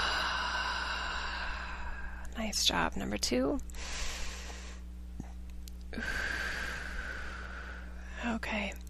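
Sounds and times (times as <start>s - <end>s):
deep breaths in through the nose and out through the mouth: 0.0s - 2.3s, 3.7s - 4.9s, 5.9s - 8.3s
speech: 2.4s - 4.1s, 6.0s - 6.4s, 8.2s - 8.8s.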